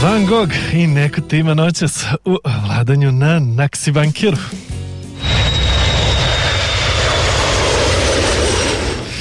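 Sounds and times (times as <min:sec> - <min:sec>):
speech: 0:00.1 - 0:04.8
airplane engine roaring over the airport at Niš: 0:05.2 - 0:09.1.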